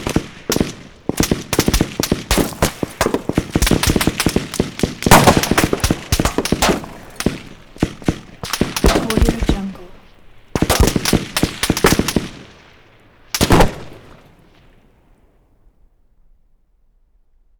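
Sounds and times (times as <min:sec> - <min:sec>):
pistol shots in a gun battle: 0:00.0 - 0:12.6, 0:13.4 - 0:14.2.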